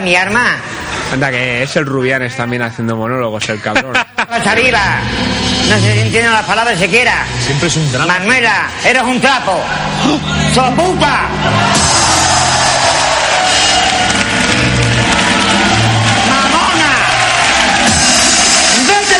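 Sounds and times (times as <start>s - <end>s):
speech: 0.0s - 12.0s
laughter: 3.4s - 4.7s, 11.0s - 13.2s
audience applauding and cheering at a live comedy monologue show: 9.6s - 19.1s.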